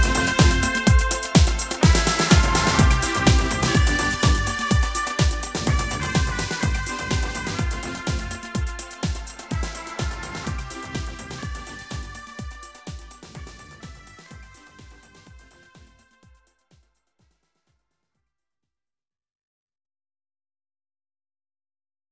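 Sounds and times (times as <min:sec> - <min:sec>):
stompin trumpet: 0:00.0 - 0:16.2.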